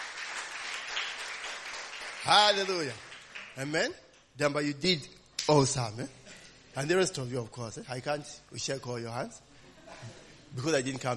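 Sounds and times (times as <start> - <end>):
applause for performers during a church service: 0.0 - 3.9
speech: 2.2 - 6.2, 6.8 - 11.1.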